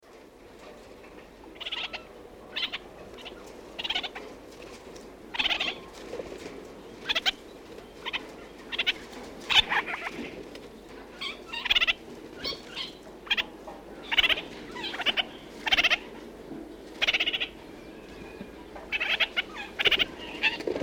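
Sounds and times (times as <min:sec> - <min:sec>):
red-crowned parakeet chattering in New Zealand: 0:01.6 - 0:04.2, 0:05.3 - 0:05.8, 0:07.0 - 0:07.4, 0:08.0 - 0:10.1, 0:11.2 - 0:16.0, 0:17.0 - 0:17.6, 0:18.9 - 0:20.6.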